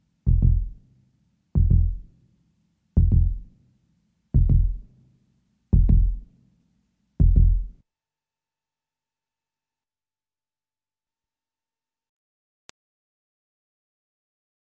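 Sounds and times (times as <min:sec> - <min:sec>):
heartbeat: 0:00.3 - 0:00.8, 0:01.6 - 0:02.1, 0:03.0 - 0:03.5, 0:04.4 - 0:04.9, 0:05.8 - 0:06.2, 0:07.2 - 0:07.8.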